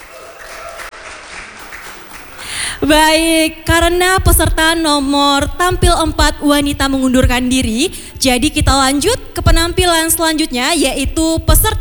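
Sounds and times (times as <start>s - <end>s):
audience applause: 0.0s - 2.8s
speech: 2.8s - 11.8s.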